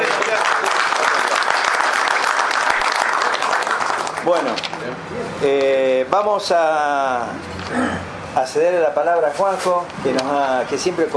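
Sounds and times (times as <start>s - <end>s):
audience applause: 0.0s - 4.7s
speech: 4.3s - 11.1s.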